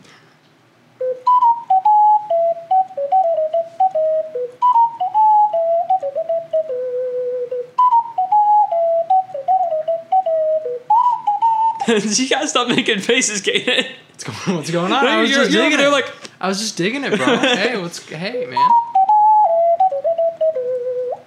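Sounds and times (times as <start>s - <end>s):
bright whistle-like video game theme melody: 1.0s - 11.9s, 18.5s - 21.2s
laughter: 11.8s - 16.2s, 17.0s - 18.3s
speech: 11.9s - 18.8s.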